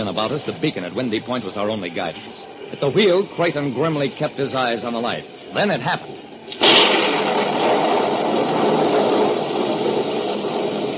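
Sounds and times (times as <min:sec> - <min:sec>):
speech: 0:00.0 - 0:06.3
lightning strike crack: 0:06.5 - 0:10.9
thunder rumbling: 0:06.5 - 0:10.9.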